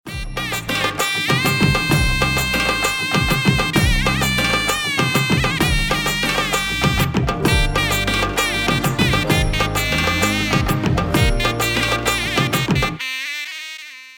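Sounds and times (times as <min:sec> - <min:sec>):
Indian wedding music tone: 0:00.1 - 0:13.1.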